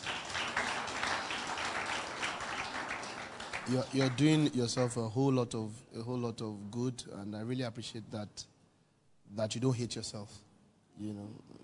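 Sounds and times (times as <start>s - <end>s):
audience applause: 0.0s - 5.0s
speech: 3.7s - 8.5s, 9.3s - 11.6s.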